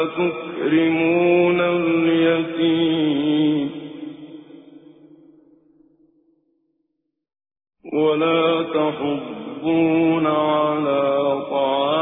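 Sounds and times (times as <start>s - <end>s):
Quran recitation with tajweed: 0.0s - 5.2s, 7.9s - 12.0s.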